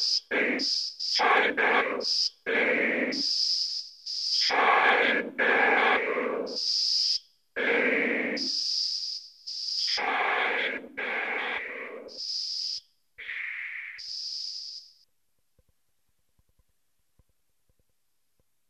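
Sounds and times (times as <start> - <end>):
vocoder voice: 0.0 - 3.2, 4.4 - 6.6, 7.6 - 8.5, 9.9 - 12.2.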